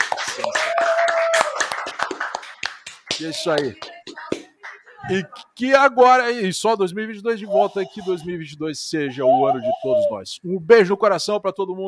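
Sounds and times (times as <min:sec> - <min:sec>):
round of applause: 0:00.0 - 0:04.8
speech: 0:03.2 - 0:03.9, 0:05.1 - 0:11.8.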